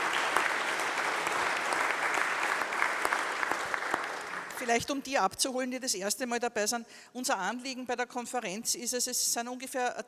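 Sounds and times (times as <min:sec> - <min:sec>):
audience applause: 0:00.0 - 0:04.8
speech: 0:04.7 - 0:10.0.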